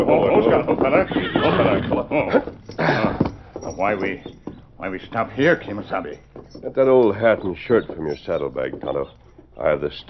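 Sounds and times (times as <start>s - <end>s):
speech: 0.0s - 3.1s, 3.8s - 10.0s
horse whinnying as riders halt in a western radio drama: 0.0s - 3.6s
horse hoof clops: 0.0s - 10.0s.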